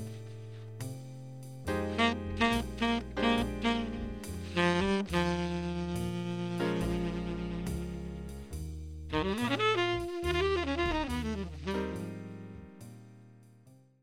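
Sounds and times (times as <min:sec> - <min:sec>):
saxophone subtone: 0:01.7 - 0:08.5, 0:09.1 - 0:12.8.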